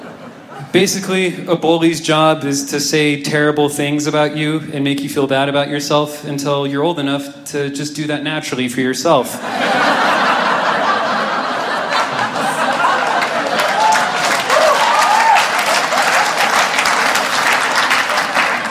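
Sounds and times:
laughter: 0:00.0 - 0:01.4, 0:09.3 - 0:18.6
speech: 0:00.6 - 0:09.9
audience applause: 0:10.6 - 0:18.6.

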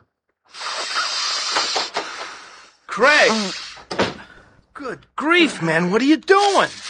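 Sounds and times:
person sniffing chemical fumes: 0:00.5 - 0:04.6
speech: 0:03.0 - 0:04.0, 0:04.8 - 0:06.8.

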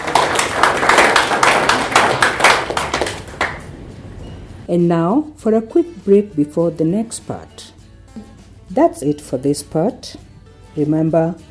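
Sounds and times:
audience clapping: 0:00.0 - 0:03.8
speech: 0:04.7 - 0:10.2, 0:10.8 - 0:11.4.

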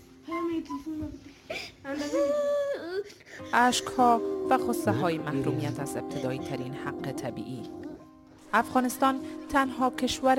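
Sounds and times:
speech: 0:00.6 - 0:02.5, 0:03.5 - 0:07.8, 0:08.5 - 0:10.3
person crying and sobbing: 0:01.6 - 0:06.4.

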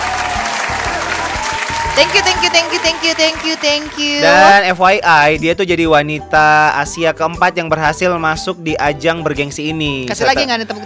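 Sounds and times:
applause: 0:00.0 - 0:04.3
speech: 0:02.0 - 0:10.8.

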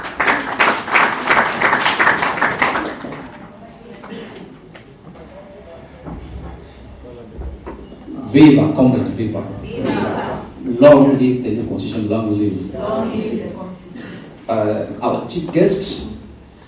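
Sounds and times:
audience clapping: 0:00.0 - 0:04.9
speech: 0:08.4 - 0:09.9, 0:10.8 - 0:13.6, 0:14.5 - 0:16.1.

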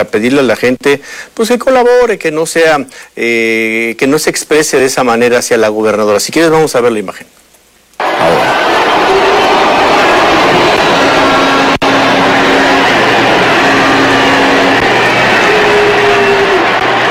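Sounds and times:
speech: 0:00.0 - 0:07.4
large crowd booing: 0:08.0 - 0:17.0.

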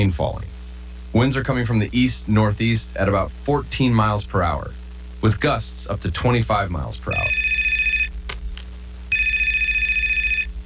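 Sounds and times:
speech: 0:00.0 - 0:00.5, 0:01.1 - 0:07.5
telephone ringing with electronic trill: 0:07.1 - 0:08.1, 0:09.1 - 0:10.6.

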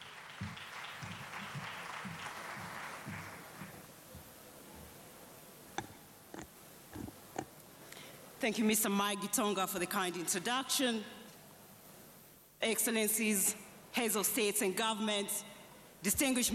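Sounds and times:
audience applause: 0:00.0 - 0:03.9
speech: 0:08.4 - 0:11.2, 0:12.6 - 0:16.5.

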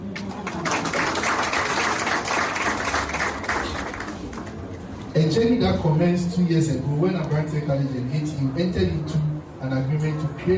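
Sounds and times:
audience applause: 0:00.2 - 0:04.6
speech: 0:05.2 - 0:10.5.

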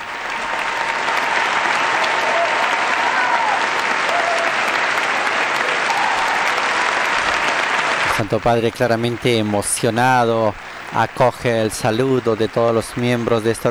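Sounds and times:
acclamation of all the participants: 0:00.0 - 0:13.6
laughter: 0:00.0 - 0:13.6
prolonged applause: 0:00.0 - 0:13.6
speech: 0:08.2 - 0:13.6.

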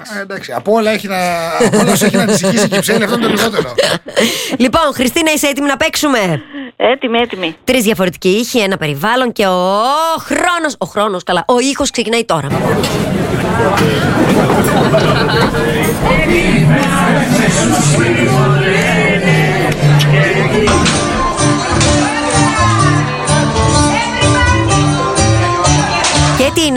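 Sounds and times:
speech: 0:00.0 - 0:18.8
laughter: 0:01.5 - 0:04.5, 0:12.5 - 0:22.8
crowded taverna chatter: 0:12.5 - 0:26.4.

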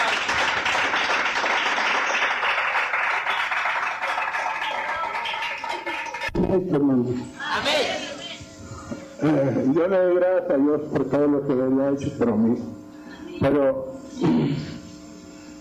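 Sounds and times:
audience applause: 0:00.0 - 0:06.4
speech: 0:06.5 - 0:07.8, 0:09.2 - 0:12.8, 0:13.4 - 0:14.6.

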